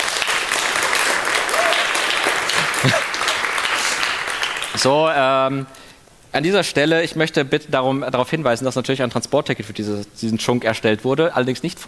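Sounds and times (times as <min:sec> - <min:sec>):
crowd applause: 0:00.0 - 0:04.9
speech: 0:02.8 - 0:03.1, 0:04.8 - 0:11.8.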